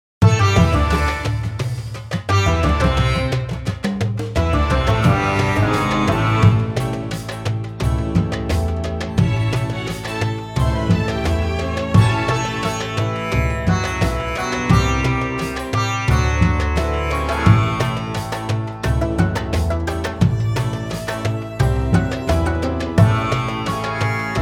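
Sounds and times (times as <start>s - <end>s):
sitar: 0.2s - 24.3s.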